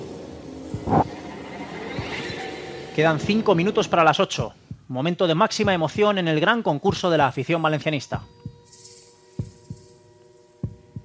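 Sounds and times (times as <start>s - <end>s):
heartbeat sound effect: 0.7s - 1.1s, 4.4s - 5.0s, 5.6s - 6.2s, 6.9s - 7.1s, 8.4s - 8.6s, 9.4s - 9.9s, 10.6s - 11.0s
speech: 0.7s - 1.1s, 3.0s - 8.3s.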